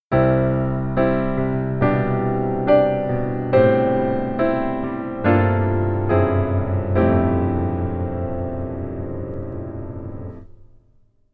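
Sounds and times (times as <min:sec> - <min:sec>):
keyboard: 0:00.1 - 0:10.6.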